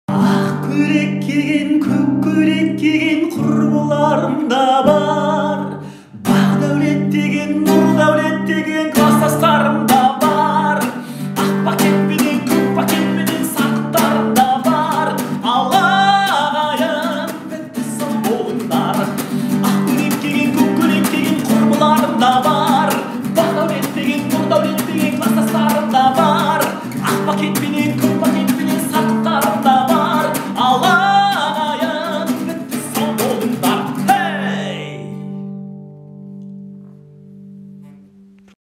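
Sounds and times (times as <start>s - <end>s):
guitar cover: 0.1s - 38.5s.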